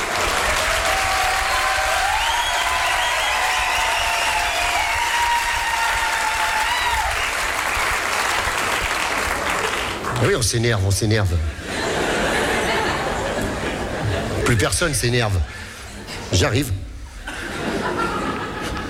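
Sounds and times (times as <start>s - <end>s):
audience applause: 0.0s - 10.4s
speech: 10.3s - 11.6s, 14.5s - 15.6s, 16.3s - 16.8s
laughter: 11.5s - 14.9s, 17.1s - 18.8s.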